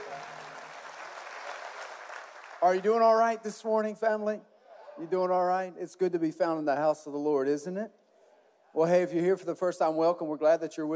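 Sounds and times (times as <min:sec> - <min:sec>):
audience clapping: 0:00.0 - 0:03.6
speech: 0:02.6 - 0:08.0, 0:08.7 - 0:10.9.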